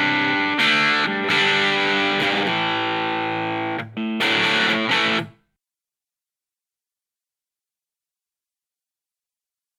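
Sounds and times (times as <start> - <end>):
semi-hollow electric guitar through crunch amp: 0.0 - 5.4.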